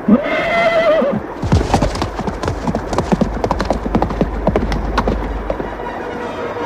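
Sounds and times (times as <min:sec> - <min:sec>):
loud horse whinny: 0:00.0 - 0:01.4
galloping warhorse hoofbeats charging into battle: 0:01.1 - 0:06.5.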